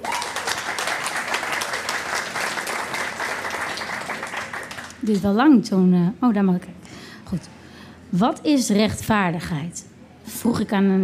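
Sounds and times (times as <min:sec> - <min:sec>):
crowd applauding: 0:00.0 - 0:05.2
speech: 0:05.0 - 0:11.0.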